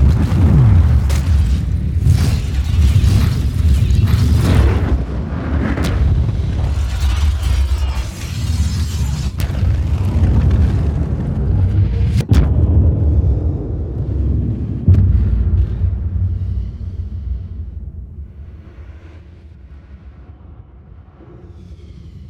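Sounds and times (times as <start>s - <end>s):
rumble: 0.0s - 22.2s.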